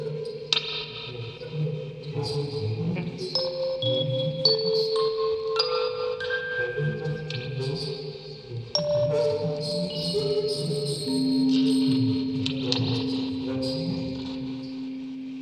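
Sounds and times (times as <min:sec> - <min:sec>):
field recording ambience: 0:00.0 - 0:15.4
vocoder: 0:00.0 - 0:15.4
quartet of music boxes with tape: 0:03.4 - 0:08.0, 0:08.8 - 0:15.4.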